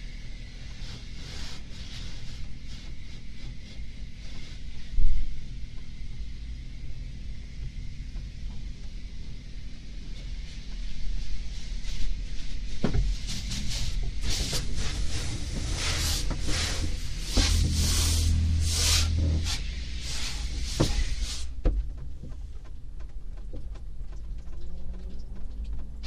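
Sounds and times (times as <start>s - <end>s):
low rumble inside a car in an automatic car wash: 0.0s - 26.0s
car wash spraying and scrubbing: 0.6s - 5.0s, 11.2s - 22.4s.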